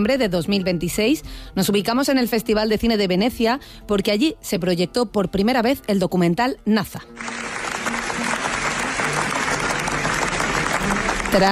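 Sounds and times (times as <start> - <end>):
speech: 0.0 - 7.6, 11.3 - 11.5
Venice Film Festival audience ovation after a documentary screening: 7.2 - 11.5.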